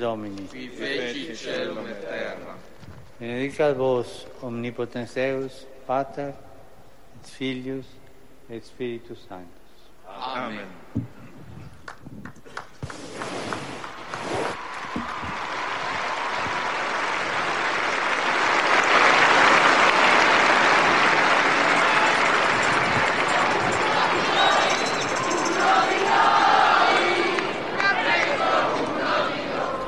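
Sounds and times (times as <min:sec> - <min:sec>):
speech: 0:00.0 - 0:06.5, 0:07.2 - 0:11.2
storm of applause from audience: 0:12.5 - 0:29.7.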